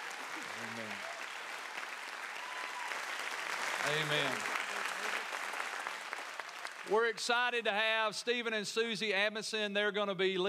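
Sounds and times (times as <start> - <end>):
audience applause: 0.0 - 7.2
speech: 3.9 - 4.5, 6.9 - 10.4.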